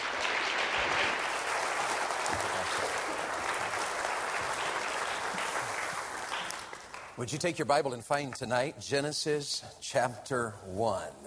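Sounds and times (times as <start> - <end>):
audience applause at an evening church gathering welcoming a guest speaker: 0.0 - 7.2
speech: 7.2 - 11.2.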